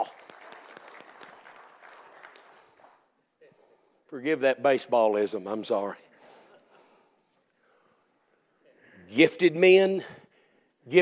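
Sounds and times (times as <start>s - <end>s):
audience clapping: 0.0s - 3.2s
speech: 4.1s - 6.0s, 9.2s - 10.2s.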